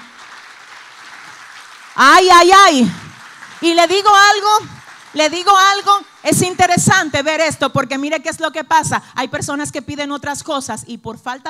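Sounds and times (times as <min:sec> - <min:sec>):
audience applause: 0:00.0 - 0:06.3
speech: 0:02.0 - 0:03.0, 0:03.6 - 0:11.4.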